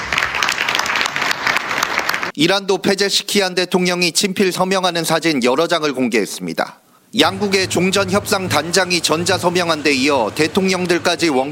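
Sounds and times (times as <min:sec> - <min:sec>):
attendees applauding at a state dinner in the Palace of Versailles: 0:00.0 - 0:02.4
speech: 0:02.4 - 0:11.5.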